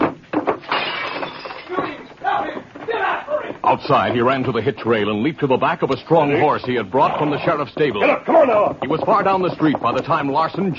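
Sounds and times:
window glass breaking: 0.4 - 2.0
speech: 3.7 - 10.7.

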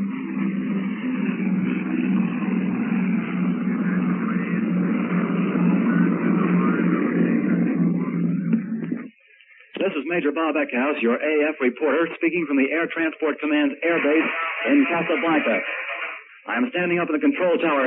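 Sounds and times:
four-engine propeller C-54 airliner taking off: 0.0 - 9.1
speech: 10.2 - 15.9, 16.5 - 17.8.

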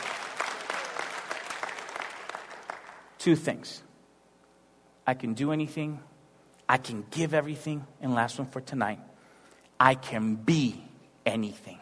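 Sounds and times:
audience clapping: 0.0 - 3.2
speech: 3.2 - 3.9, 5.1 - 6.1, 6.7 - 9.1, 9.8 - 11.8.

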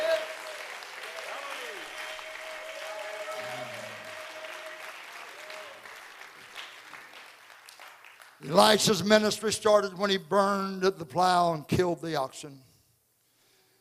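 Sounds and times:
crowd audience clapping hands: 0.0 - 9.2
speech: 8.4 - 12.7.

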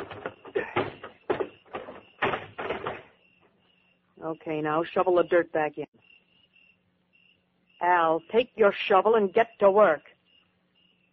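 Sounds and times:
trunk being shoved into a grave: 0.0 - 3.2
speech: 4.3 - 6.1, 7.8 - 10.1.

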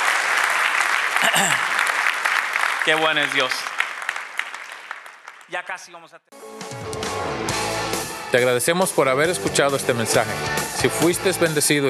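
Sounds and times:
audience applause: 0.0 - 5.9
speech: 1.2 - 1.7, 2.8 - 3.7, 5.5 - 7.4, 8.3 - 11.8.

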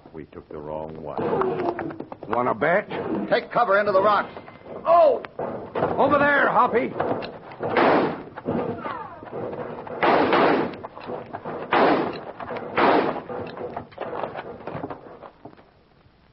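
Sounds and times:
speech: 0.2 - 8.1
booming gunshots in a rocky canyon shootout: 5.4 - 13.5
sharp gunshot cracks: 7.7 - 8.3, 10.0 - 10.8, 11.7 - 13.3.

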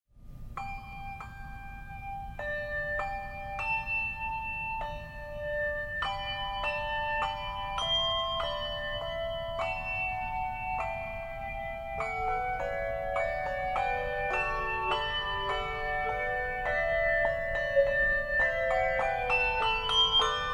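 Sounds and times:
handbell music: 0.6 - 20.5.

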